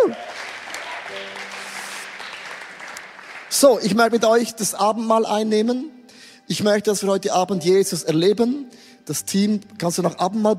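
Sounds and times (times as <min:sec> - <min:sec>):
audience applause: 0:00.0 - 0:03.6
speech: 0:03.5 - 0:10.5.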